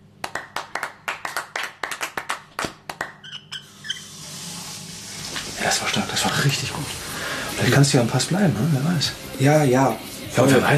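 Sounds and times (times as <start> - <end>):
audience applause: 0.2 - 3.2
speech: 5.8 - 10.7.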